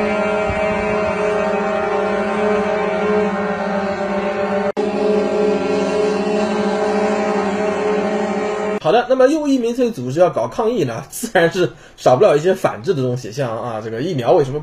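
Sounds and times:
many truck horns honking continuously in a street: 0:00.0 - 0:08.8
speech: 0:08.9 - 0:14.6.

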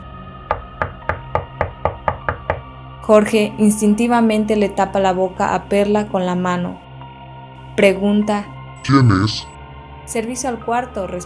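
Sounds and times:
knocking on a door: 0:00.5 - 0:02.7
speech: 0:03.1 - 0:06.8, 0:07.8 - 0:09.5, 0:10.1 - 0:11.2.

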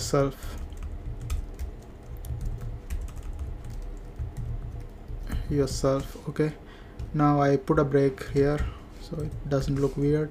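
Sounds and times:
typing on a computer keyboard while filling in a web form: 0:00.0 - 0:06.2, 0:08.2 - 0:09.8
speech: 0:00.1 - 0:00.6, 0:05.5 - 0:10.2.

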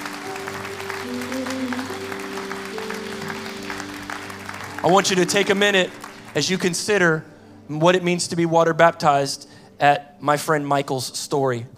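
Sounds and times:
audience clapping hands: 0:00.0 - 0:07.2
speech: 0:04.8 - 0:11.7.

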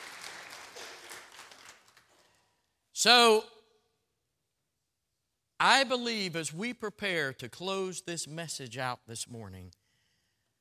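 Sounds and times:
audience applause: 0:00.0 - 0:02.3
speech: 0:03.0 - 0:03.6, 0:05.6 - 0:09.8.

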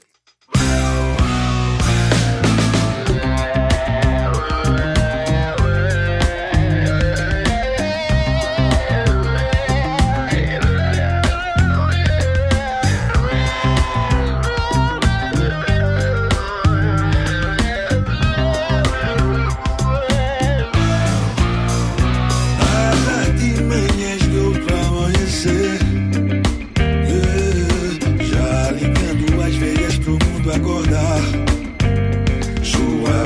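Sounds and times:
Brazilian music track playing: 0:00.0 - 0:33.2.

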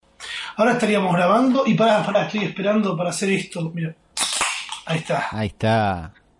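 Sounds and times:
speech: 0:00.6 - 0:04.0, 0:04.8 - 0:06.2
beer bottle being opened in a friend's kitchen: 0:04.2 - 0:04.9.

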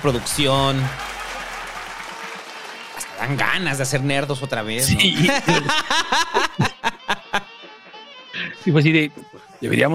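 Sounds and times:
speech: 0:00.0 - 0:01.2, 0:03.2 - 0:07.5, 0:08.4 - 0:09.9
applause: 0:00.0 - 0:04.8
laughter: 0:04.8 - 0:08.1.

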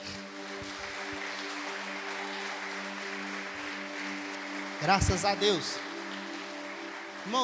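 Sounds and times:
audience applause: 0:00.0 - 0:07.4
speech: 0:04.8 - 0:05.9, 0:07.2 - 0:07.4.

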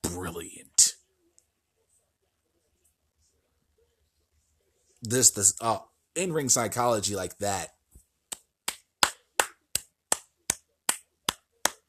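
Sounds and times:
speech: 0:05.0 - 0:07.8
single person clapping: 0:08.3 - 0:11.8.

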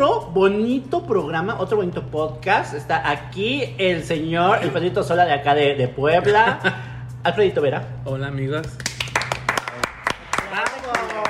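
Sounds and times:
speech: 0:00.3 - 0:09.0
clapping: 0:08.6 - 0:11.2.

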